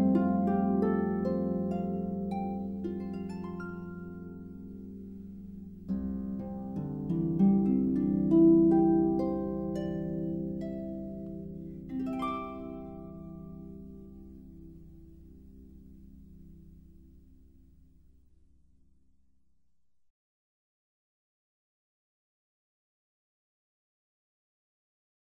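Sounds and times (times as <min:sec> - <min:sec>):
instrumental harp praise music: 0:00.0 - 0:17.8.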